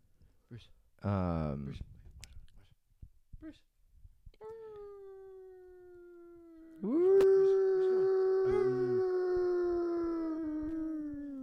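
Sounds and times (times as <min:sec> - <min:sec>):
speech: 0:00.5 - 0:02.0, 0:03.4 - 0:03.7
dog howling indoors: 0:05.9 - 0:11.4.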